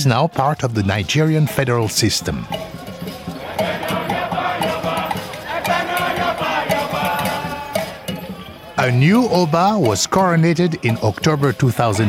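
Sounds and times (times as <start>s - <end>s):
speech: 0.0s - 2.8s, 8.8s - 12.0s
Ekasa dance performed at royal palace in Benin City: 2.4s - 8.7s.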